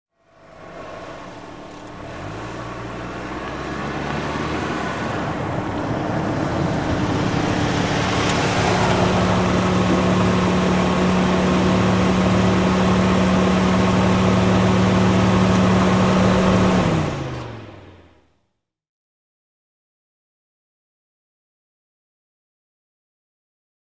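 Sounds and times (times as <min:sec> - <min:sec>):
sedan switching off from accessory mode in park: 0:00.3 - 0:18.3.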